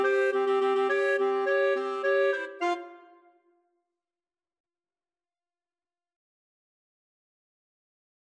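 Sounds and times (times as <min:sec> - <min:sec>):
clarinet duet: 0:00.0 - 0:03.4.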